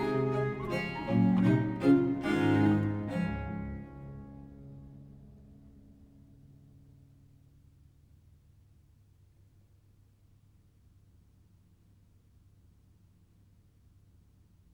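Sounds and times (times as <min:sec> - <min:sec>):
duo for two bass viols in D major and minor: 0:00.0 - 0:05.2.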